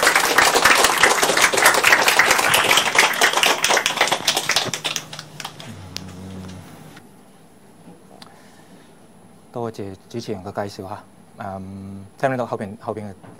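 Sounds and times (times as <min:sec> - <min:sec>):
crowd applauding: 0:00.0 - 0:06.7
low hum: 0:04.5 - 0:07.0
speech: 0:09.7 - 0:13.3.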